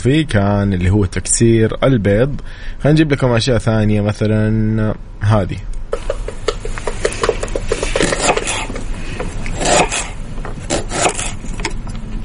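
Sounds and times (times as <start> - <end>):
speech: 0.0 - 6.2
onion being chopped on a cutting board: 5.9 - 11.4.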